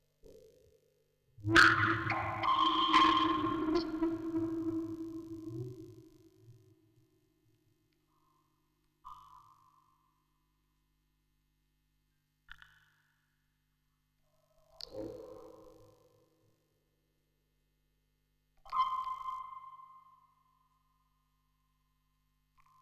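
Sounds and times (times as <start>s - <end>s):
vocoder recording: 1.5s - 5.4s.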